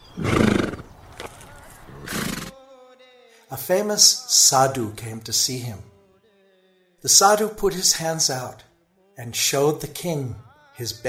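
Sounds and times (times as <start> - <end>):
king's horse neighing: 0.0 - 1.0, 1.9 - 2.6
speech: 3.5 - 5.9, 7.0 - 11.0.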